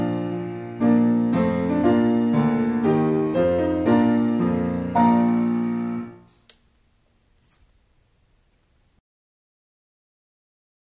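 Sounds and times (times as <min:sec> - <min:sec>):
accompaniment music: 0:00.0 - 0:06.2.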